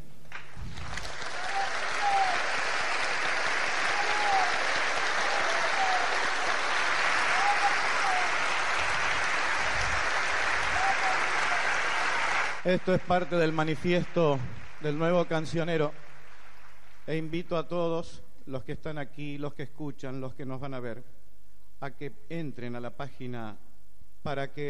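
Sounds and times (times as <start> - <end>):
audience applause: 0.4 - 17.0
cheers and whistles: 1.2 - 12.6
speech: 12.7 - 16.0, 17.1 - 21.2, 21.8 - 23.6, 24.2 - 24.6.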